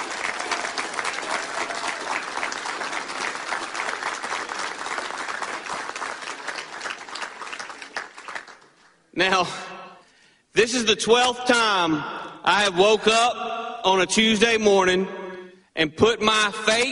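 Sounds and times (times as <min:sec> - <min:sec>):
audience applause: 0:00.0 - 0:09.0
speech: 0:09.2 - 0:09.7, 0:10.6 - 0:15.2, 0:15.8 - 0:16.9.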